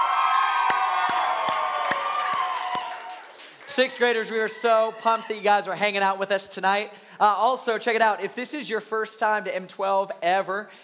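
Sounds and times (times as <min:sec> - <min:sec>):
crowd of seventh and eighth graders shouting and cheering a welcome: 0:00.0 - 0:05.7
sharp claps: 0:00.6 - 0:03.9
speech: 0:03.8 - 0:10.8.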